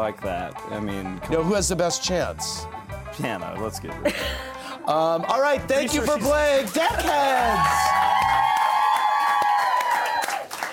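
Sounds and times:
speech: 0:00.0 - 0:08.0
mild audience applause: 0:05.9 - 0:10.7.

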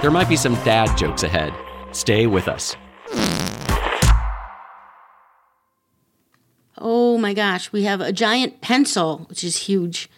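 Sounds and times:
speech: 0:00.0 - 0:03.6, 0:06.8 - 0:10.1
whoopee cushion fart noise: 0:03.1 - 0:04.0.

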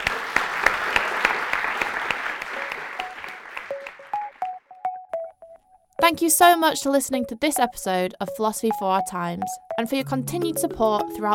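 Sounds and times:
audience applause: 0:00.0 - 0:04.6
brief tonal pings: 0:02.6 - 0:11.2
speech: 0:06.1 - 0:11.3.

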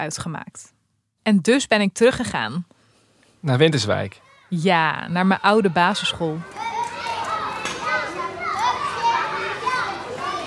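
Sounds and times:
speech: 0:00.0 - 0:02.8, 0:03.4 - 0:06.7
children playing in schoolyard at recess: 0:04.2 - 0:04.6, 0:05.2 - 0:10.4.

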